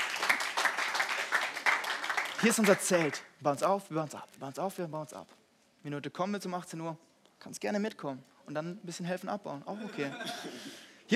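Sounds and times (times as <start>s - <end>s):
audience applause: 0.0s - 3.2s
speech: 2.4s - 11.1s.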